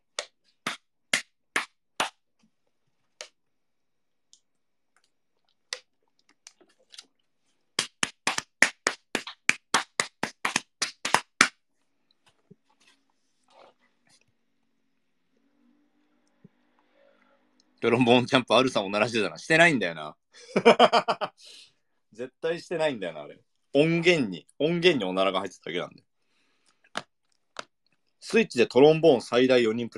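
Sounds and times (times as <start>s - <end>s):
hands slapping thighs: 0.1s - 2.3s, 7.8s - 11.6s, 26.9s - 27.8s
speech: 17.8s - 26.1s, 28.2s - 29.9s.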